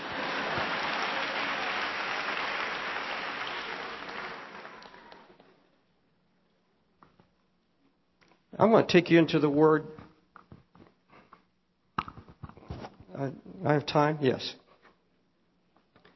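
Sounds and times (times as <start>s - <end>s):
audience clapping: 0.0s - 5.4s
speech: 8.6s - 10.0s, 13.2s - 14.6s.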